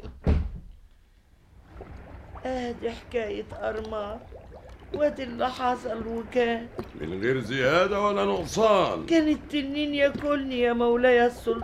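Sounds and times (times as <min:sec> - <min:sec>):
heavy door being pulled shut: 0:00.2 - 0:00.7
speech: 0:02.4 - 0:11.6.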